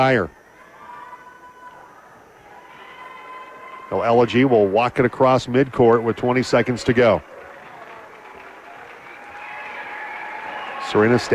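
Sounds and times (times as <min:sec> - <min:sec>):
speech: 0:00.0 - 0:00.4, 0:03.9 - 0:07.3, 0:10.9 - 0:11.3
faint crowd noise: 0:00.0 - 0:11.3
voice: 0:00.0 - 0:11.3
basketball fans applauding in arena: 0:02.8 - 0:04.7, 0:05.7 - 0:11.3.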